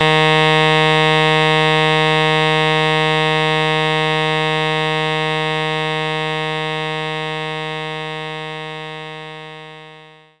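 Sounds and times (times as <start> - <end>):
alto saxophone note E flat 3: 0.0 - 10.3.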